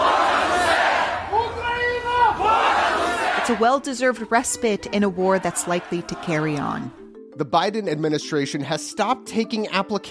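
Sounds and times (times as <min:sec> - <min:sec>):
Kherson residents cheering and chanting in celebration: 0:00.0 - 0:03.9, 0:04.9 - 0:06.9
speech: 0:03.5 - 0:10.0.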